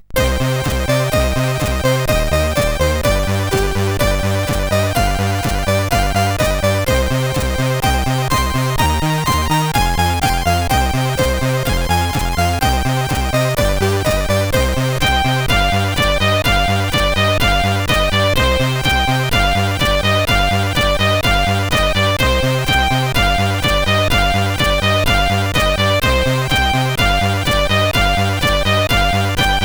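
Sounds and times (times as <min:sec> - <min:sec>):
SID chiptune music on a CSG8580R5 chip: 0:00.0 - 0:29.6.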